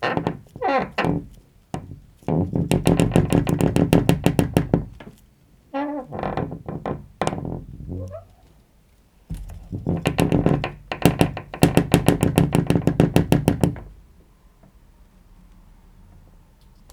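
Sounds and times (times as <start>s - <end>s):
door squeaking: 0.0s - 5.1s, 5.8s - 8.5s, 9.4s - 13.9s.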